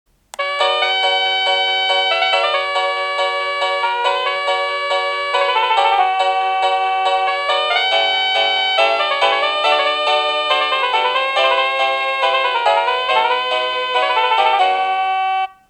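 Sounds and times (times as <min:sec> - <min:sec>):
bell ringing melody: 0:00.4 - 0:15.6.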